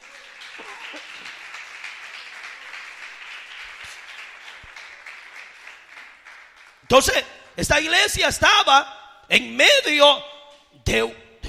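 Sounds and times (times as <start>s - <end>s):
audience applause: 0.0s - 6.9s
speech: 6.9s - 11.2s.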